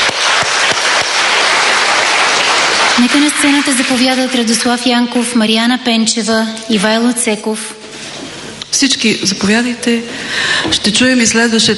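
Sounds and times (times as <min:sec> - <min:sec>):
audience applause at a ceremony honouring people: 0:00.0 - 0:04.6
speech: 0:03.0 - 0:07.8, 0:08.8 - 0:11.7.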